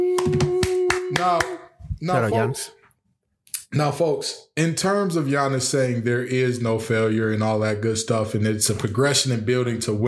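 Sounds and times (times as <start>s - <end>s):
people clapping: 0.0s - 1.7s
speech: 0.2s - 0.4s, 1.1s - 2.8s, 3.7s - 10.0s.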